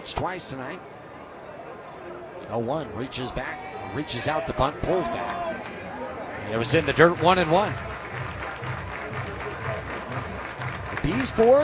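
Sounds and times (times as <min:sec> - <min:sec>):
speech: 0:00.0 - 0:01.0, 0:02.0 - 0:05.4, 0:06.5 - 0:07.9, 0:11.1 - 0:11.6
fans cheering at an outdoor baseball World Cup watch party: 0:00.0 - 0:11.6
fans clapping at an outdoor baseball World Cup watch party: 0:04.0 - 0:11.6.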